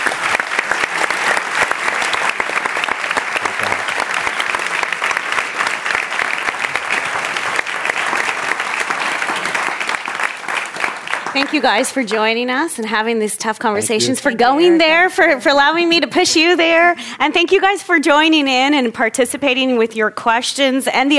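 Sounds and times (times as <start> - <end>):
audience applause: 0.0 - 12.4
speech: 11.4 - 21.1.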